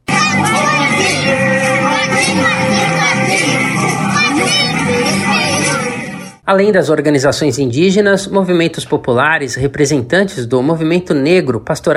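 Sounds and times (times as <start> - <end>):
indigenous children shouting while marching: 0.0 - 6.3
speech: 6.5 - 11.9.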